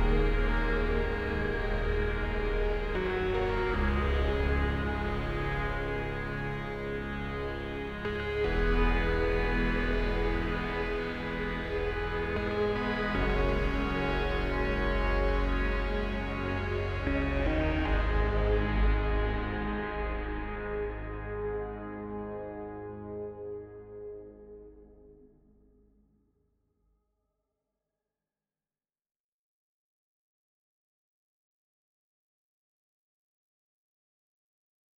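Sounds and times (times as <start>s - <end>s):
synth: 0.0s - 25.2s.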